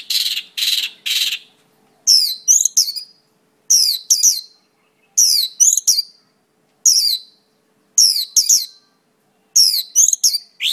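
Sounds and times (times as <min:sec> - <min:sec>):
songbird singing master song of whistles, chirps and buzzy notes: 0:00.0 - 0:10.7.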